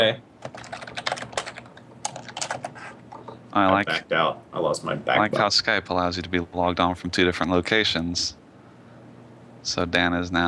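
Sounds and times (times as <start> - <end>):
speech: 0.0 - 0.6, 3.6 - 8.4, 9.6 - 10.4
typing on a computer keyboard in a chat: 0.4 - 3.3.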